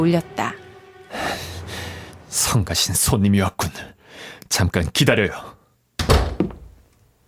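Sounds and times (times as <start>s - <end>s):
speech: 0.0s - 0.4s, 2.3s - 5.6s, 6.4s - 6.6s
door closing: 6.0s - 6.8s.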